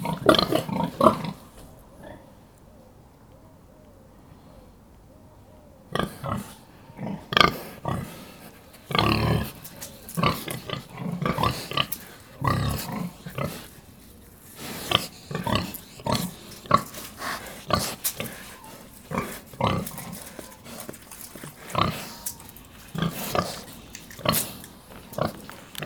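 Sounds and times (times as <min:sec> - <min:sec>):
pig grunting: 0:00.0 - 0:02.3, 0:05.9 - 0:25.8
snuffling and rustling: 0:07.1 - 0:25.8.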